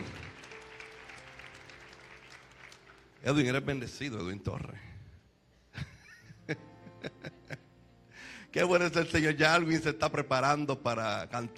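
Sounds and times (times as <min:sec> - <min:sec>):
applause: 0:00.0 - 0:03.8
speech: 0:03.2 - 0:04.9, 0:08.5 - 0:11.5.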